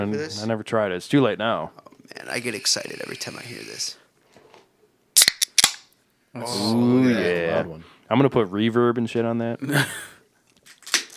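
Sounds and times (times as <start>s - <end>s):
speech: 0.0s - 4.0s, 6.3s - 10.1s
beer can cracked open: 5.2s - 6.0s, 10.5s - 11.1s.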